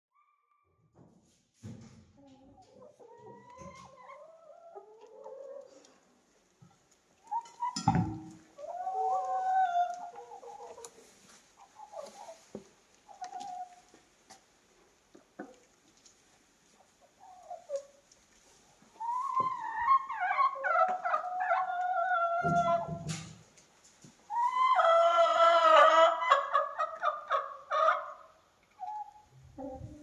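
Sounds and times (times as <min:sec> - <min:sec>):
chickens clucking: 0:02.1 - 0:06.3, 0:07.2 - 0:14.4, 0:16.7 - 0:23.4, 0:24.3 - 0:30.0.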